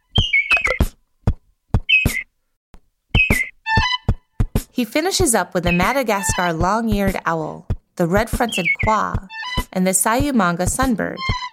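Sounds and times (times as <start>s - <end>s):
lesser vasa parrot whistled calls: 0.1s - 0.8s, 1.9s - 2.2s, 3.2s - 4.0s, 8.5s - 9.6s
speech: 4.8s - 11.4s.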